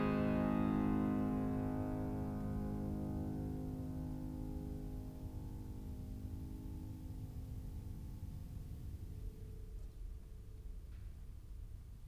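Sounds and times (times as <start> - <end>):
baroque keyboard piece: 0.0 - 8.4.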